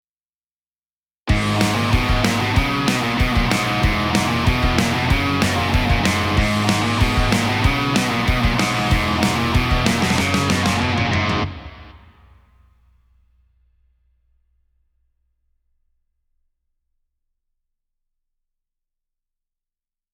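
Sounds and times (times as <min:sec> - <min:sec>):
drums: 0:01.3 - 0:14.4.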